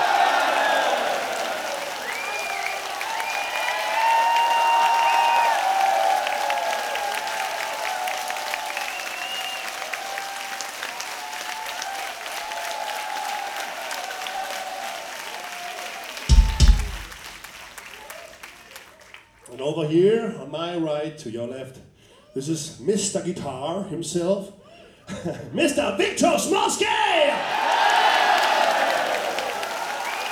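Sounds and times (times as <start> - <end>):
cheers and whistles: 0.0 - 19.3, 27.3 - 30.3
audience applause: 0.0 - 19.4, 27.4 - 30.3
speech: 19.8 - 21.8, 22.4 - 24.6, 25.2 - 27.6.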